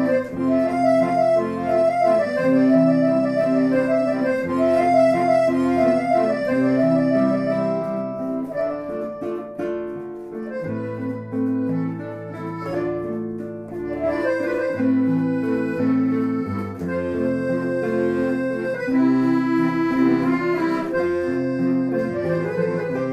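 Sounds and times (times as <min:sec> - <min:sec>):
accordion: 0:00.0 - 0:23.1
guitar: 0:00.0 - 0:23.1.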